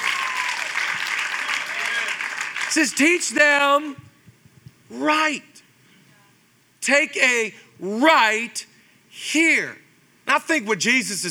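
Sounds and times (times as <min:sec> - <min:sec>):
audience applause: 0:00.0 - 0:03.3
speech: 0:02.8 - 0:04.1, 0:04.9 - 0:05.6, 0:06.9 - 0:11.3.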